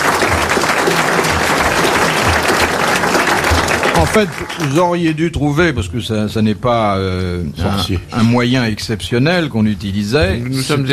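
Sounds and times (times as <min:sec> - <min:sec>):
audience applause: 0:00.0 - 0:05.2
speech: 0:04.2 - 0:10.9.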